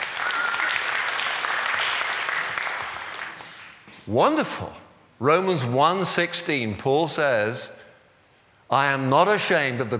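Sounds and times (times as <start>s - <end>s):
crowd clapping: 0.0s - 3.8s
speech: 4.0s - 7.8s, 8.7s - 9.9s.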